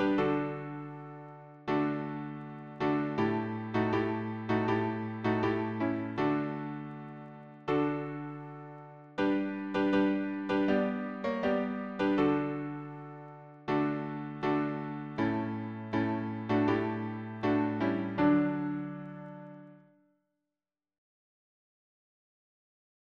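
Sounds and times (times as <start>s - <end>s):
piano harmony: 0.0s - 19.9s.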